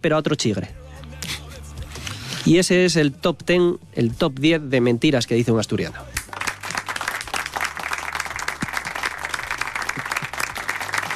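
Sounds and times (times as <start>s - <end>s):
speech: 0.0s - 0.8s, 2.4s - 6.2s
audience applause: 6.2s - 11.1s.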